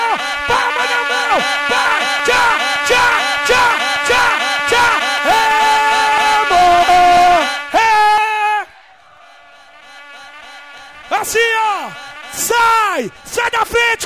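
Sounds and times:
crowd booing at a live show: 0:00.0 - 0:14.0
laughter: 0:00.0 - 0:14.0.

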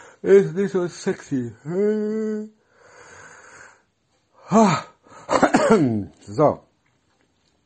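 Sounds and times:
speech: 0:00.2 - 0:02.6, 0:04.5 - 0:06.7
person yawning: 0:04.4 - 0:05.0.

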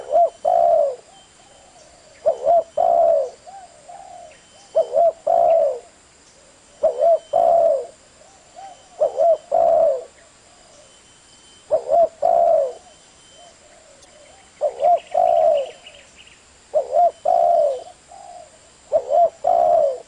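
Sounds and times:
Spotted Dove cooing: 0:00.0 - 0:11.0, 0:11.6 - 0:16.1, 0:16.7 - 0:20.0.

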